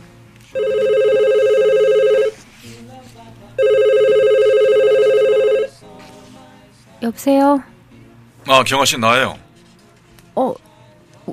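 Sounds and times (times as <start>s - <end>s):
telephone ringing: 0.6s - 2.4s, 3.6s - 5.8s
speech: 7.1s - 7.7s, 8.5s - 9.4s, 10.4s - 10.6s.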